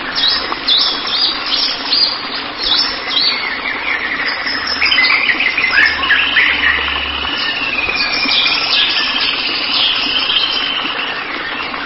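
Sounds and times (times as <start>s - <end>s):
white-rumped shama song: 0.2s - 11.7s
soft low rumble: 3.3s - 10.5s.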